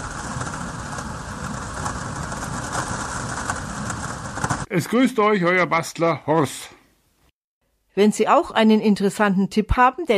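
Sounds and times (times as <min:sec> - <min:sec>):
heavy rain pattering on plexiglass covers: 0:00.0 - 0:04.7
speech: 0:04.7 - 0:06.8, 0:08.0 - 0:10.1.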